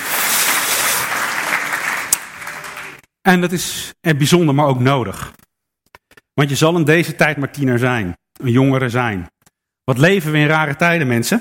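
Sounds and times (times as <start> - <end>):
audience applause: 0.0 - 3.0
speech: 3.2 - 5.4, 6.4 - 11.4.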